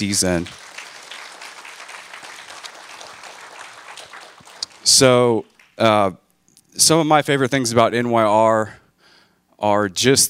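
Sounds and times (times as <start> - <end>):
speech: 0.0 - 0.7, 4.9 - 6.2, 6.8 - 8.8, 9.6 - 10.2
audience clapping: 0.0 - 6.1.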